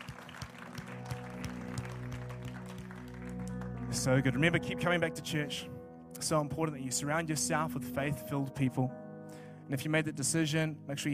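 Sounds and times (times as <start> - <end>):
round of applause: 0.0 - 4.2
speech: 4.0 - 9.0, 9.7 - 11.1.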